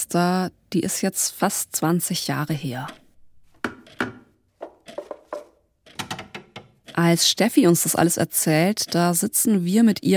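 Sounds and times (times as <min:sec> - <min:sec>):
speech: 0:00.1 - 0:03.0, 0:07.0 - 0:10.1
wooden corner bench creaking and knocking: 0:03.6 - 0:06.9.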